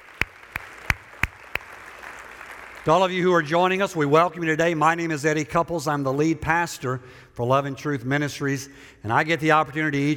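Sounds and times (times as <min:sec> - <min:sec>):
hand claps in welcome: 0:00.0 - 0:02.9
speech: 0:02.8 - 0:10.1.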